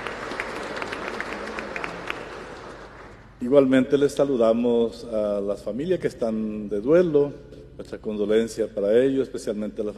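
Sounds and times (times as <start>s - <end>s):
audience applause: 0.0s - 3.3s
speech: 3.4s - 9.9s.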